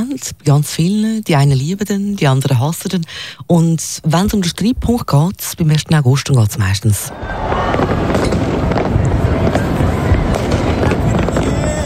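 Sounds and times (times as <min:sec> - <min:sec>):
speech: 0:00.2 - 0:08.4
fireworks exploding: 0:07.1 - 0:11.8.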